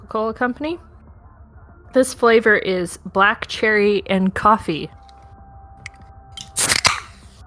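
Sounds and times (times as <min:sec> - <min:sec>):
speech: 0:00.1 - 0:00.9, 0:01.9 - 0:05.0
sparkling water can snapping open: 0:05.8 - 0:07.2.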